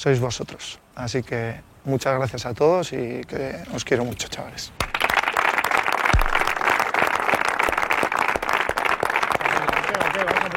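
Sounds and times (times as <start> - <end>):
speech: 0.0 - 4.9
teammates applauding: 4.8 - 10.5.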